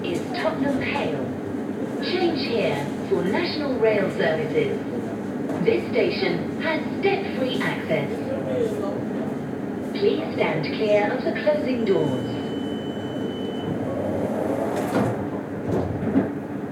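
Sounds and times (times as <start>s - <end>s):
underground metro train on tracks: 0.0s - 16.7s
underground metro train brake squeal: 12.1s - 14.7s.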